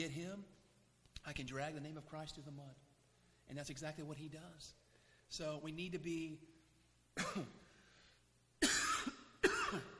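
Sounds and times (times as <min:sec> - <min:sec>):
speech: 0:00.0 - 0:00.6, 0:01.2 - 0:02.9, 0:03.5 - 0:06.5, 0:07.2 - 0:07.6, 0:09.7 - 0:09.9
man coughing harsh and throaty: 0:07.2 - 0:07.8, 0:08.6 - 0:09.9.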